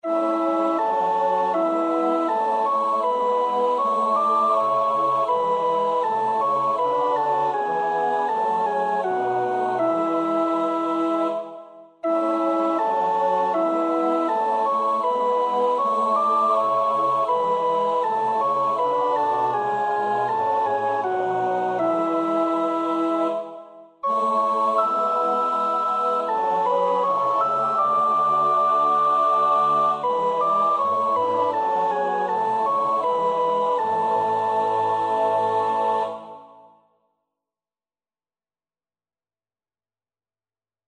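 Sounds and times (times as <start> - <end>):
soprano singing: 0.0 - 36.7.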